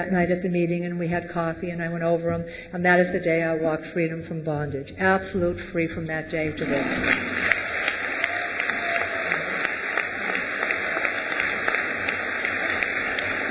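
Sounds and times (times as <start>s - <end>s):
speech: 0.0s - 7.6s
audience clapping: 6.6s - 13.5s.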